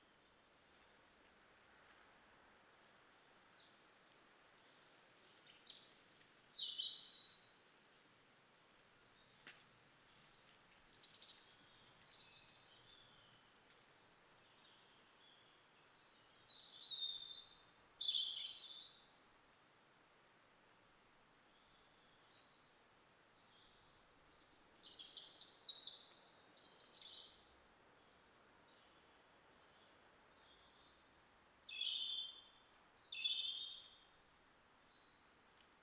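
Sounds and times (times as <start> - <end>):
faint hiss: 0.0 - 35.8
European robin singing: 4.6 - 7.5, 10.9 - 13.4, 14.6 - 19.1, 23.4 - 27.4, 29.7 - 35.8.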